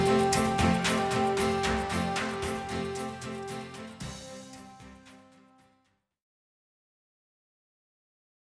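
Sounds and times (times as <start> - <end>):
achievement jingle: 0.0 - 5.0.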